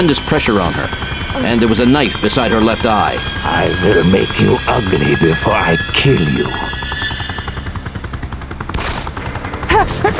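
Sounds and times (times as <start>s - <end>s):
speech: 0.0s - 6.8s
pistol shots, likely 9mm: 8.7s - 9.2s.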